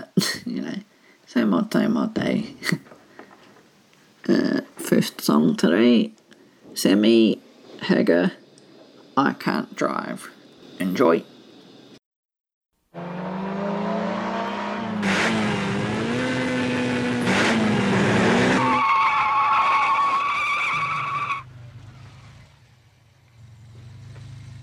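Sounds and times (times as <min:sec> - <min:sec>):
speech: 0:01.4 - 0:02.9, 0:04.3 - 0:06.2, 0:06.8 - 0:08.4, 0:09.2 - 0:11.3
car tires squealing while cornering fast: 0:12.9 - 0:22.6
car engine rumble: 0:13.0 - 0:18.8, 0:21.4 - 0:24.6.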